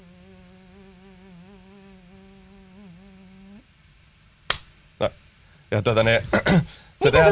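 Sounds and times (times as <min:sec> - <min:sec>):
vocal imitation of a buzzing fly: 0:00.0 - 0:03.6
sharp snaps: 0:04.5 - 0:04.8
speech: 0:05.0 - 0:07.3.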